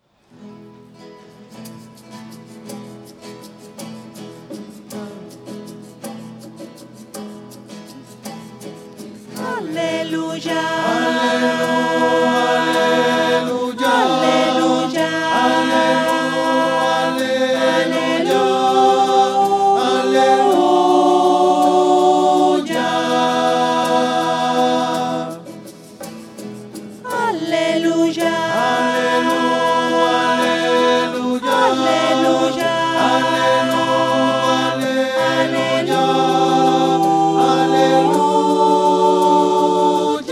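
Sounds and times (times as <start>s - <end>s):
voices: 9.4s - 25.5s, 27.1s - 40.3s.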